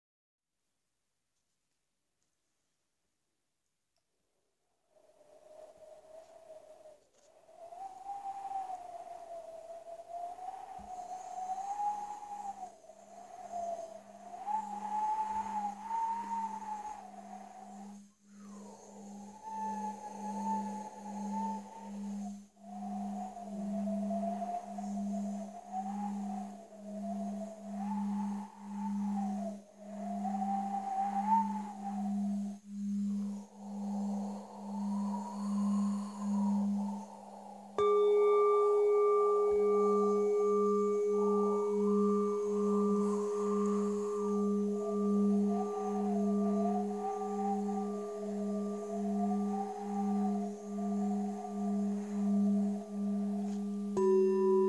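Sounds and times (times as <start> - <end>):
meditation bells: 10.4 - 54.6.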